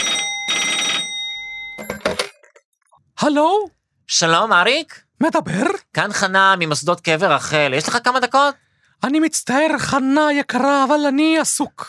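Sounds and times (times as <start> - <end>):
old-style telephone bell ringing for an unidentified incoming call: 0.0 - 2.3
speech: 3.2 - 11.8.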